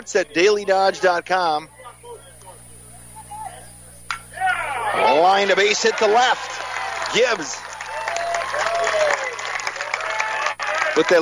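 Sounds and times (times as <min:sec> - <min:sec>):
speech: 0:00.0 - 0:01.8, 0:05.0 - 0:07.7, 0:11.0 - 0:11.2
commentator talking: 0:00.0 - 0:02.8, 0:05.0 - 0:07.6
fans cheering and applauding at a softball game: 0:04.4 - 0:11.2.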